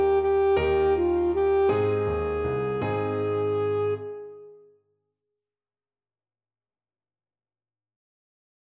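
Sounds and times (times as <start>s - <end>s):
saxophone: 0.0s - 4.6s.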